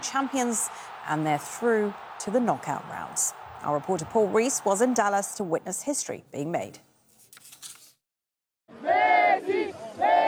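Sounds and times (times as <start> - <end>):
stadium crowd of football fans roaring and chanting: 0.0 - 5.2, 8.7 - 10.2
speech: 0.1 - 6.9.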